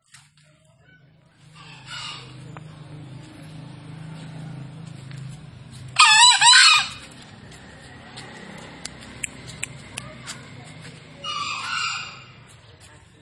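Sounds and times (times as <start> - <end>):
low engine-like hum: 0.8 - 13.2
green junglefowl crowing: 1.5 - 2.6, 6.0 - 7.2, 11.2 - 12.5.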